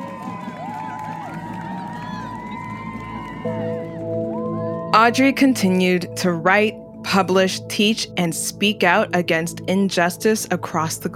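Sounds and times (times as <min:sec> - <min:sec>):
crowd applause: 0:00.0 - 0:04.9
speech: 0:03.4 - 0:03.8, 0:04.9 - 0:11.1.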